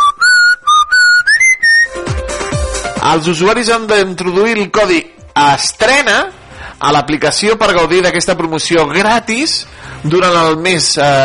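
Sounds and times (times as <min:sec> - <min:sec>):
whistled background theme melody: 0:00.0 - 0:02.7
instrumental music with thumping beats: 0:00.0 - 0:03.8
speech: 0:03.1 - 0:11.2.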